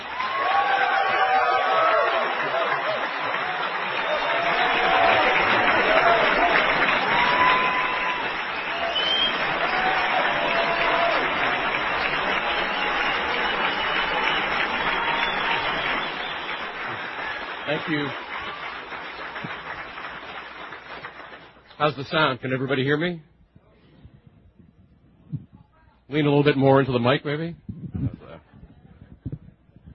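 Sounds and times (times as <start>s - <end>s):
audience applause: 0.0s - 21.7s
speech: 21.8s - 23.3s, 26.1s - 28.2s.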